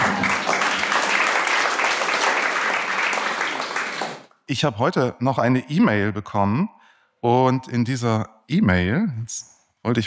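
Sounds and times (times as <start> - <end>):
audience clapping: 0.0 - 4.3
speech: 4.5 - 10.0.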